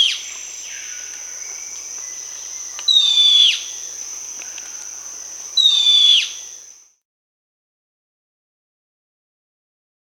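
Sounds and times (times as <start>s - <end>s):
Plain-brown Woodcreeper Dendrocincla fuliginosa in Peru: 0.0s - 6.8s.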